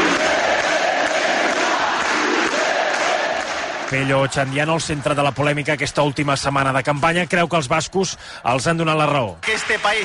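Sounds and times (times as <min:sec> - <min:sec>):
crowd shouting pro-independence chants: 0:00.0 - 0:03.9
speech: 0:03.9 - 0:10.0.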